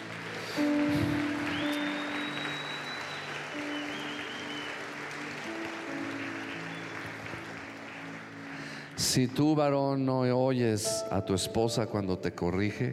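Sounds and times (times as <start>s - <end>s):
audience applause: 0.0s - 9.6s
speech: 9.1s - 12.9s.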